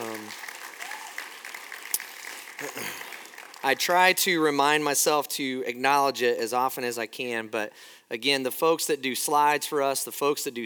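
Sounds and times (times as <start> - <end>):
church congregation applauding the worship band: 0.0 - 4.8
speech: 3.6 - 10.6.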